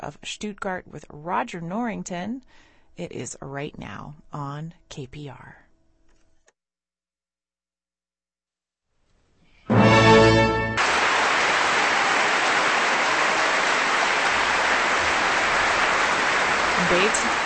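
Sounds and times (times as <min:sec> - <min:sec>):
speech: 0:00.0 - 0:05.6, 0:16.8 - 0:17.4
concert audience applause after symphony: 0:09.9 - 0:17.4.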